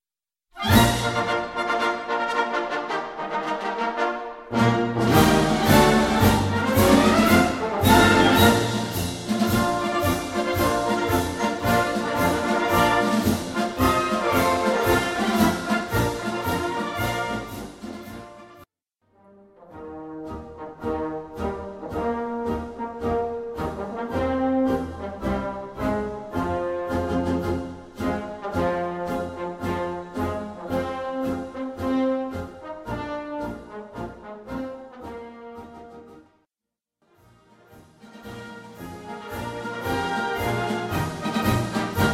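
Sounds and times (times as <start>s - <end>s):
march music: 0.6s - 36.2s, 37.1s - 42.1s.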